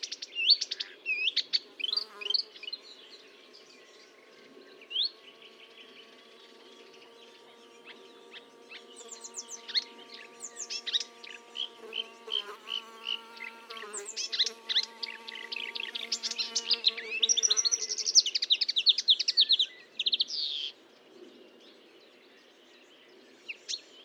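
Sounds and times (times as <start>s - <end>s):
marsh warbler singing: 0.0s - 24.0s.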